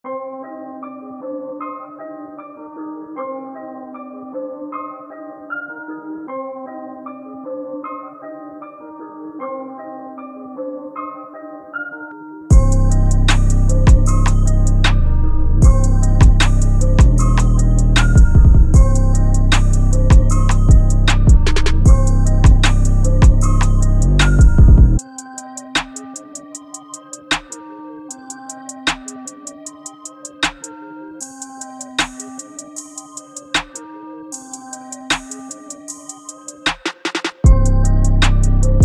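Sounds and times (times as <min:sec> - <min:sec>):
hard beat: 0:12.5 - 0:15.0, 0:15.6 - 0:25.0, 0:25.8 - 0:27.6, 0:28.8 - 0:33.8, 0:34.4 - 0:38.8.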